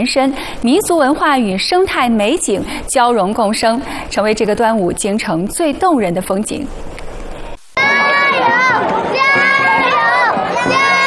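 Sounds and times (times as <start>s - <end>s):
speech: 0.0s - 7.0s
riverbank crowd cheering at dragon boat race: 7.8s - 11.0s.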